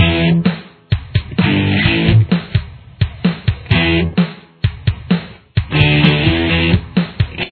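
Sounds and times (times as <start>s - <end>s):
guitar with chorus effect: 0.0s - 0.5s, 1.2s - 2.4s, 3.6s - 4.2s, 5.7s - 7.5s.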